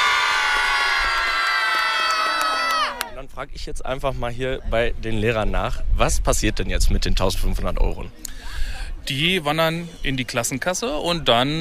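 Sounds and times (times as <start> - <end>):
crowd of schoolchildren cheering at a prize announcement: 0.0 - 3.1
speech: 3.4 - 11.5.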